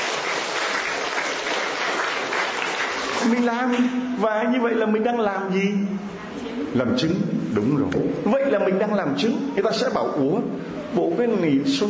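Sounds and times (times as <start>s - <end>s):
audience applause: 0.0s - 3.6s
speech: 3.2s - 11.8s.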